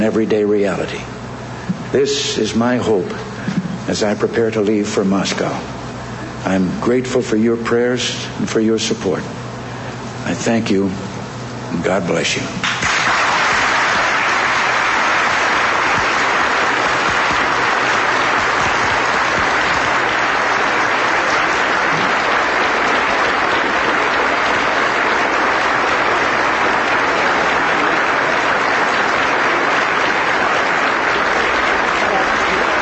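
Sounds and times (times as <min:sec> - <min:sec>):
speech: 0:00.0 - 0:01.2, 0:01.9 - 0:05.8, 0:06.4 - 0:09.4, 0:10.2 - 0:11.1, 0:11.7 - 0:12.6
large audience applause after a speech: 0:12.6 - 0:32.8.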